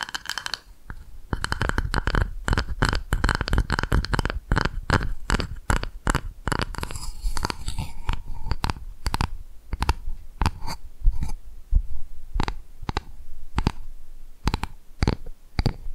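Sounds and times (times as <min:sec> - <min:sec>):
sharp tapping on different surfaces: 0:00.0 - 0:10.6, 0:12.4 - 0:13.8, 0:14.4 - 0:15.9
quiet hiss: 0:00.0 - 0:15.9.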